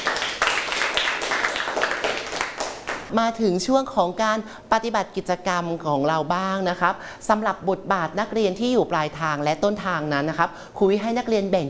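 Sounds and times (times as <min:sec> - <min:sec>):
applause: 0:00.0 - 0:03.1
speech: 0:03.1 - 0:11.6.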